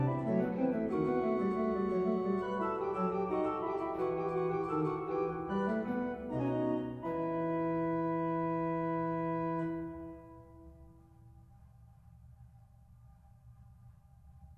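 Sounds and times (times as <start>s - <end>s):
organ chorale: 0.0s - 10.4s.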